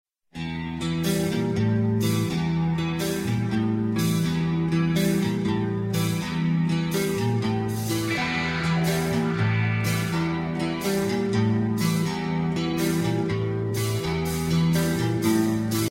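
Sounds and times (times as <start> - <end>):
rock music: 0.4 - 15.8.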